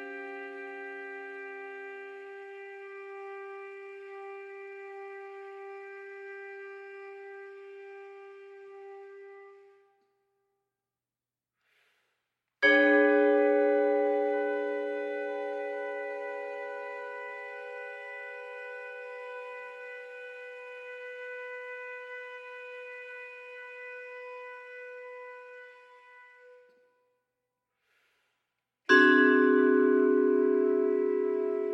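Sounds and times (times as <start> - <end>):
trumpet: 0.0 - 10.1, 12.6 - 26.9, 30.6 - 31.7
vibraphone: 12.6 - 18.5, 28.9 - 31.7.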